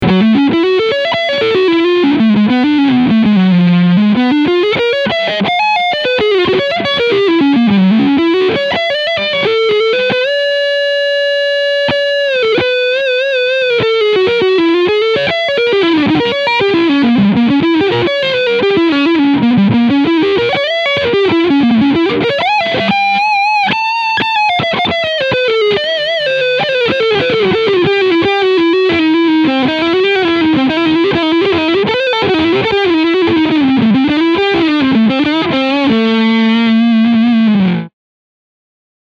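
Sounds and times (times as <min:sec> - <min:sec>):
Framus Leadsound electric guitar on front pickup: 0:00.0 - 0:37.9.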